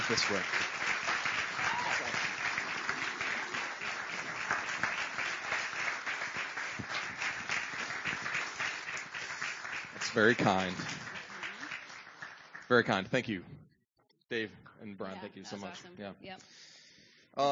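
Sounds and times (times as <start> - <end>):
crowd applause: 0.0 - 13.1
speech: 0.1 - 0.7, 10.2 - 11.0, 12.7 - 13.6, 14.3 - 16.7, 17.4 - 17.5.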